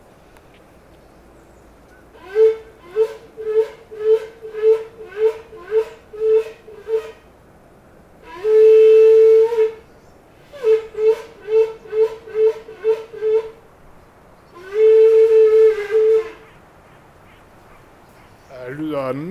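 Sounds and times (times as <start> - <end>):
blowing through a hollowed-out antler horn: 2.1 - 7.3, 8.2 - 13.6, 14.5 - 17.8.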